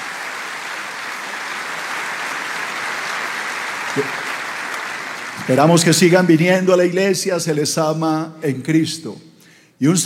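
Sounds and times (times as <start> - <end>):
welcome applause: 0.0 - 6.3
speech: 4.0 - 4.3, 5.5 - 10.0.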